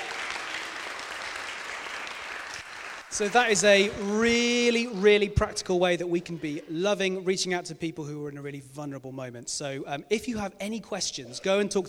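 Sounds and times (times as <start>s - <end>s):
audience applause: 0.0s - 4.1s
speech: 3.1s - 11.8s.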